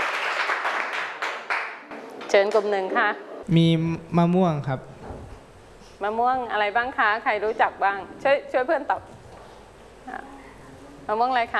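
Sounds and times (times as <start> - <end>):
class clapping for a classmate: 0.0 - 2.7
speech: 2.3 - 4.9, 6.0 - 9.2, 11.1 - 11.5.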